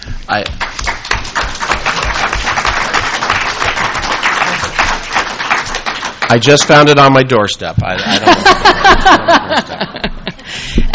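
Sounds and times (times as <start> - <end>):
speech: 0.3 - 0.9, 6.3 - 10.8
audience applause: 0.6 - 7.1
laughter: 4.2 - 5.1, 8.0 - 10.9.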